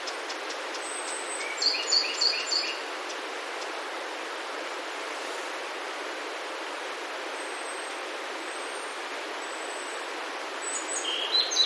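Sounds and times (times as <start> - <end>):
Japanese robin singing: 0.0 - 3.8, 7.4 - 11.6
steady hiss: 0.0 - 11.6.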